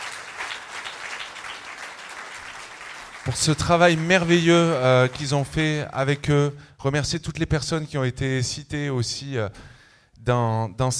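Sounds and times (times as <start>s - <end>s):
audience applause: 0.0s - 6.3s
speech: 3.3s - 10.9s.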